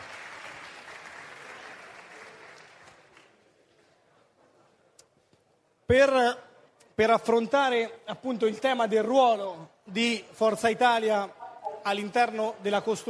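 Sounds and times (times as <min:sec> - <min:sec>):
audience applause: 0:00.0 - 0:03.3
speech: 0:05.9 - 0:06.4, 0:07.0 - 0:13.0.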